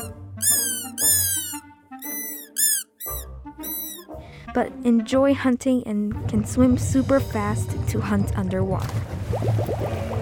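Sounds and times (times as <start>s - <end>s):
voice imitating a made-up creature with squeaky yips: 0.0s - 4.0s
speech: 4.5s - 10.1s.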